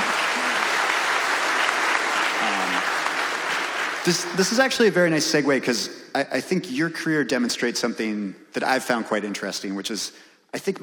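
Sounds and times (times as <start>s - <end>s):
audience clapping: 0.0s - 4.8s
speech: 4.0s - 10.8s.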